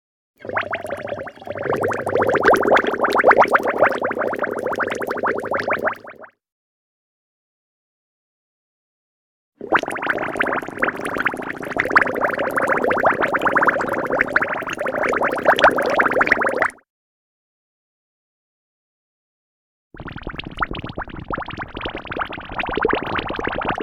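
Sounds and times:
water bubbles: 0:00.4 - 0:06.3, 0:09.6 - 0:16.8, 0:20.0 - 0:23.8.

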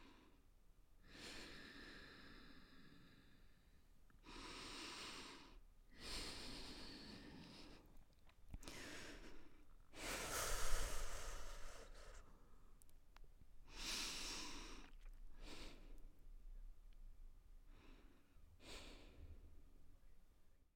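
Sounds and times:
woman breathing at length: 0:01.0 - 0:12.9, 0:13.6 - 0:16.2, 0:17.7 - 0:19.5.

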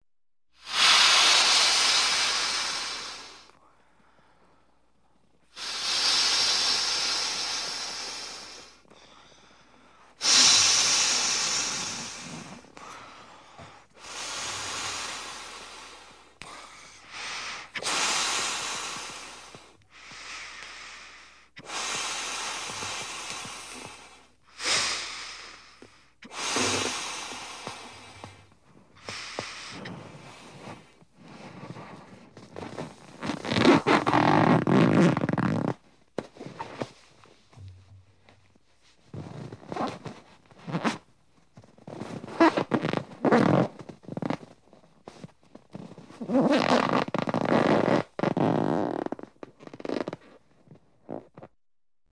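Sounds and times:
balloon being inflated: 0:00.6 - 0:03.6, 0:05.5 - 0:08.8, 0:10.2 - 0:13.1, 0:13.8 - 0:37.0, 0:39.1 - 0:50.3
balloon squeaking while being tied: 0:26.2 - 0:28.4, 0:29.0 - 0:36.9, 0:39.1 - 0:51.5.

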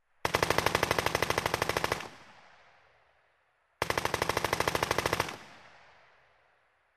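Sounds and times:
machine gun firing: 0:00.2 - 0:02.2, 0:03.8 - 0:05.6.

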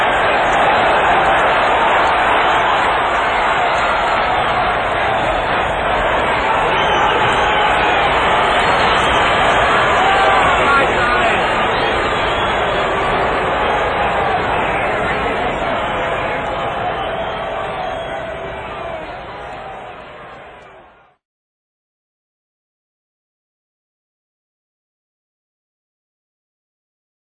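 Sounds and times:
fans at a stadium: 0:00.0 - 0:21.2.

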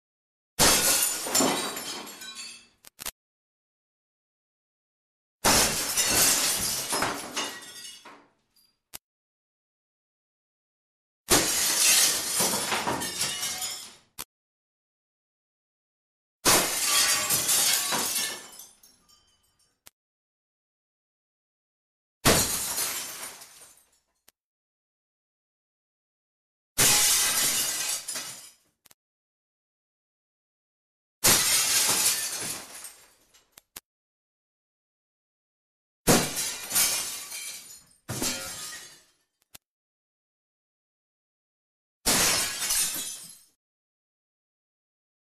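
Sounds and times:
various variants of glass breaking: 0:00.6 - 0:02.8, 0:05.4 - 0:08.2, 0:11.3 - 0:14.0, 0:16.4 - 0:19.7, 0:22.2 - 0:24.0, 0:26.8 - 0:28.6, 0:31.2 - 0:33.4, 0:36.1 - 0:39.1, 0:42.1 - 0:43.6.

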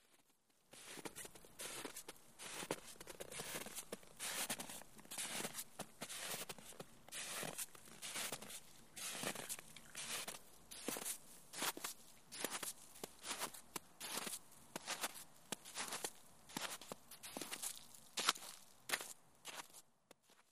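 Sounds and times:
footsteps on wet snow and ice: 0:00.0 - 0:20.5.

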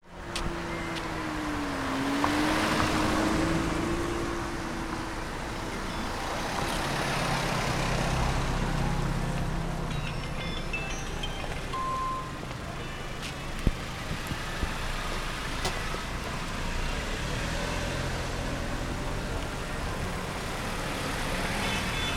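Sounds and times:
car driving on the road at night: 0:00.0 - 0:22.1
music playing: 0:08.7 - 0:14.6.

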